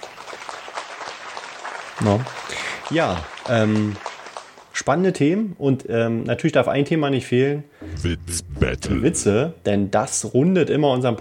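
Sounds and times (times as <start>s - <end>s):
applause from a group of people: 0.0s - 5.0s
speech: 2.0s - 4.1s, 4.8s - 11.2s.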